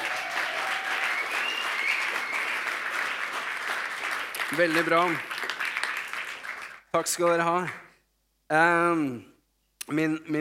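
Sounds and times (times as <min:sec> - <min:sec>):
audience applause: 0:00.0 - 0:07.5
speech: 0:04.5 - 0:05.3, 0:06.9 - 0:07.8, 0:08.5 - 0:09.3, 0:09.9 - 0:10.3.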